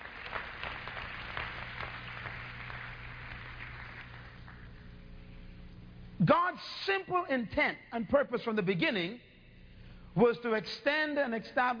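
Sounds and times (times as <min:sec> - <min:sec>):
audience clapping hands: 0:00.0 - 0:05.0
speech: 0:06.2 - 0:09.3, 0:10.2 - 0:11.7.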